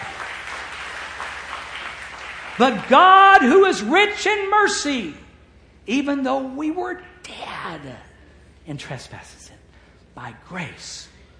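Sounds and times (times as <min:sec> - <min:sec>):
audience clapping: 0:00.0 - 0:03.7
speech: 0:02.6 - 0:05.2, 0:05.8 - 0:08.1, 0:08.7 - 0:09.5, 0:10.2 - 0:11.1.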